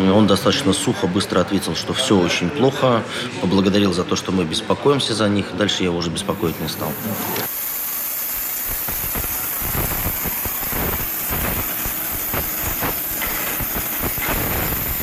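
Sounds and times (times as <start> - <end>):
speech: 0.1 - 7.6
industrial roar and hiss of drill bit surface heat treatment: 6.2 - 15.0.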